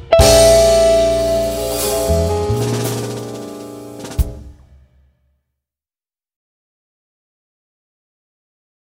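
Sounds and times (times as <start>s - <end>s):
blues music with soloist: 0.0s - 4.6s.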